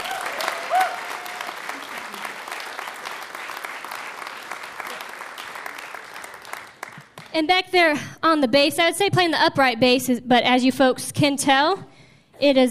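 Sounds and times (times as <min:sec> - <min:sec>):
audience applause welcoming a fiddle player at a UConn stage show: 0:00.0 - 0:07.3
speech: 0:07.4 - 0:12.6.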